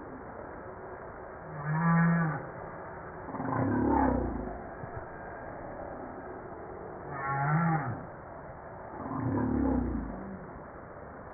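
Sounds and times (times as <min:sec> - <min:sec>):
humpback whale moaning: 0:03.3 - 0:04.6, 0:07.1 - 0:08.1, 0:09.0 - 0:10.5.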